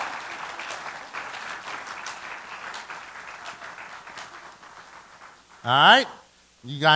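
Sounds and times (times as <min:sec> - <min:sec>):
audience applause: 0:00.0 - 0:05.8
speech: 0:05.6 - 0:06.9.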